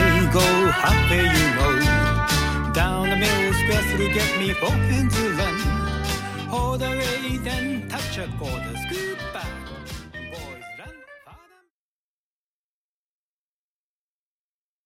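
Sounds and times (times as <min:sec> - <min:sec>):
vocals: 0:00.0 - 0:11.7.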